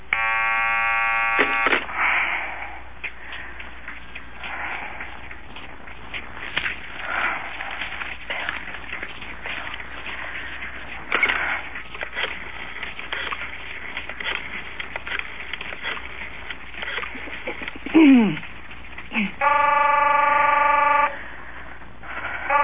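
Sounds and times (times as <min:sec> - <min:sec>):
telephone call-waiting buzzing tone: 0:00.0 - 0:02.0, 0:19.4 - 0:21.4, 0:22.5 - 0:22.6
low telephone line noise: 0:00.0 - 0:02.2, 0:03.0 - 0:22.6.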